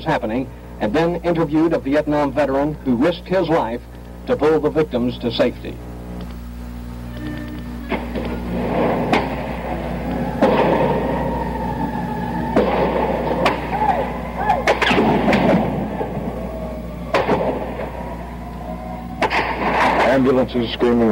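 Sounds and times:
speech: 0.0 - 5.9, 20.4 - 21.1
low rumbling hum: 0.0 - 21.1
gunshots fired during a gun battle: 10.4 - 11.0, 12.5 - 13.8, 14.6 - 16.3, 17.1 - 18.0, 19.2 - 20.4.

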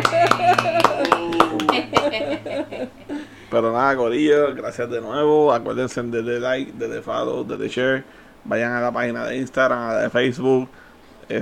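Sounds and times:
applause for the guest: 0.0 - 2.4
laughter: 0.0 - 3.4
speech: 2.4 - 11.4.

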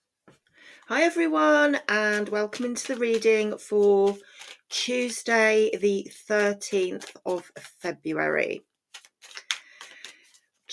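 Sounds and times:
speech: 0.9 - 8.7
playing cards being shuffled: 1.4 - 8.2, 8.8 - 10.7.

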